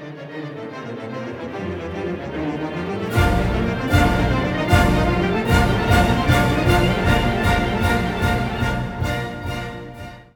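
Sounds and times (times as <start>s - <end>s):
concert band playing an overture: 3.1s - 10.3s.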